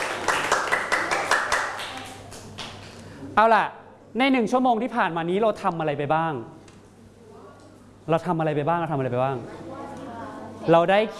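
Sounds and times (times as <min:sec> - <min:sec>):
classroom group clapping for a student group: 0:00.0 - 0:03.1
speech: 0:03.4 - 0:06.6, 0:08.0 - 0:09.8, 0:10.6 - 0:11.1.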